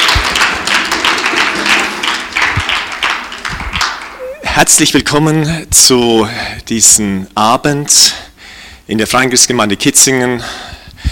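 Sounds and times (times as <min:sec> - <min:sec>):
audience applause: 0:00.0 - 0:04.5
speech: 0:04.6 - 0:08.3, 0:08.9 - 0:10.8.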